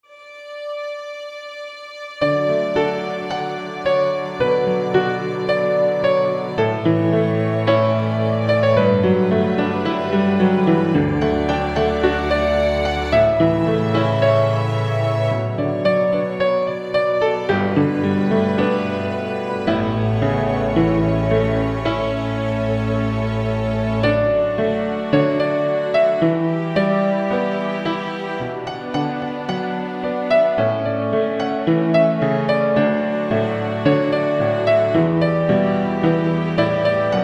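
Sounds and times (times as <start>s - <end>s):
orchestral music: 0.0s - 37.2s.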